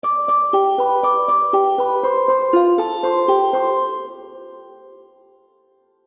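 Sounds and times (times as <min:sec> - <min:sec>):
happy baby game music: 0:00.1 - 0:04.9.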